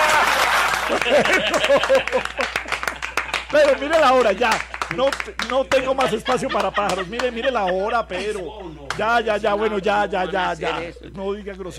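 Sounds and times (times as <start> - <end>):
laughter: 0.0 - 4.3, 5.5 - 11.1
crowd applause: 0.0 - 7.3
speech: 0.9 - 2.8, 3.5 - 11.7.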